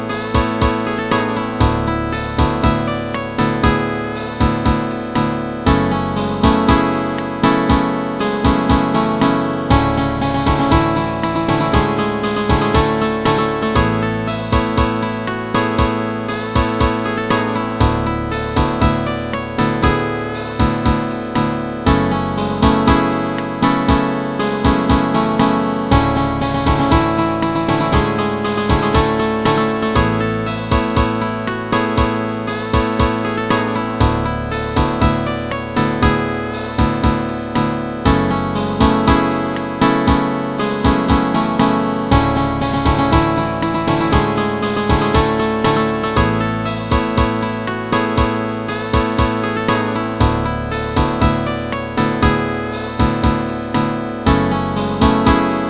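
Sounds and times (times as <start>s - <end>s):
music loop: 0.1s - 55.6s.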